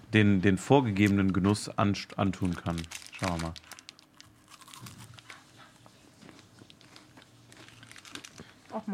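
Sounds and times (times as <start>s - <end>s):
speech: 0.1s - 3.8s
biting into and chewing crunchy food: 3.2s - 8.9s.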